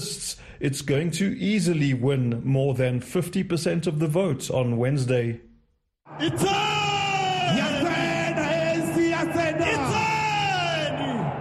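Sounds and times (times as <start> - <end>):
speech: 0.6 - 5.5, 6.1 - 6.8
thousands of ANC supporters cheering at election rally in Soweto stadium: 6.0 - 11.4.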